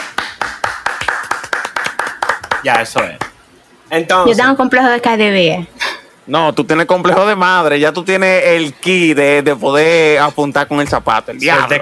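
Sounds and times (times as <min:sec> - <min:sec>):
hand clapping: 0:00.0 - 0:03.4
speech: 0:02.6 - 0:03.3, 0:03.9 - 0:11.7.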